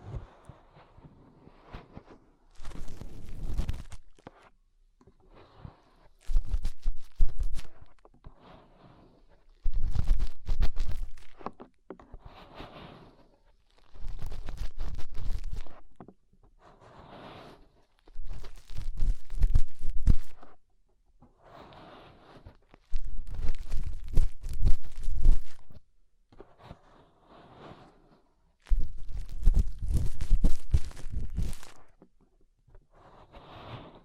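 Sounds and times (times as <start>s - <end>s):
fingers rubbing and scraping inside an ear: 0.0s - 4.6s, 5.4s - 8.3s, 8.9s - 16.0s, 17.0s - 20.7s, 21.9s - 25.9s, 28.6s - 32.2s.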